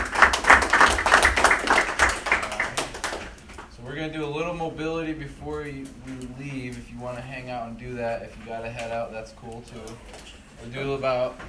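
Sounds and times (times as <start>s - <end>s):
group clapping: 0.0s - 3.7s
speech: 5.1s - 11.4s.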